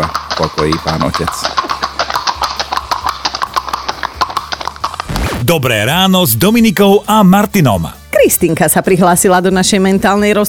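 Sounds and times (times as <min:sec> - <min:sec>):
speech: 0:00.0 - 0:01.7, 0:05.5 - 0:10.4
pony hooves clip-clopping: 0:00.0 - 0:05.1.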